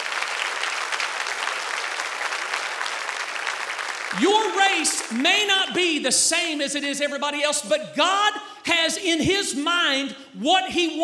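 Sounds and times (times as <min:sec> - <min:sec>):
crowd applause: 0:00.0 - 0:05.5
speech: 0:04.1 - 0:11.0.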